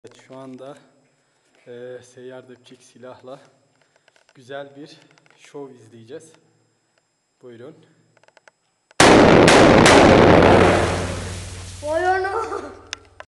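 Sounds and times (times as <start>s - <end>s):
gunshot: 9.0s - 11.8s.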